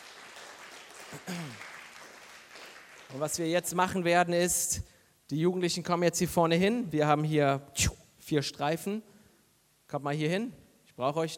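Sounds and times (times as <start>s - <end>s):
audience applause: 0.0s - 3.2s
speech: 1.2s - 1.6s, 3.1s - 9.1s, 9.9s - 11.3s.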